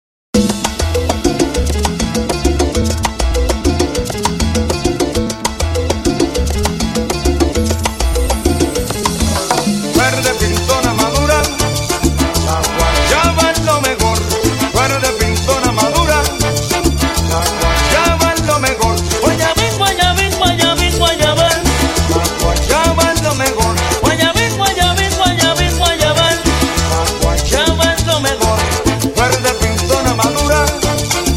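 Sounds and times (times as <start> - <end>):
salsa intro music at 100 BPM: 0.3 - 31.3.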